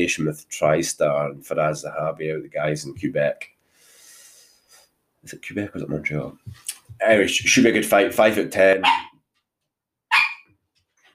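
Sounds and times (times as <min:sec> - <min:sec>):
speech: 0:00.0 - 0:03.5, 0:05.2 - 0:09.1
dog barking: 0:08.8 - 0:09.1, 0:10.1 - 0:10.5.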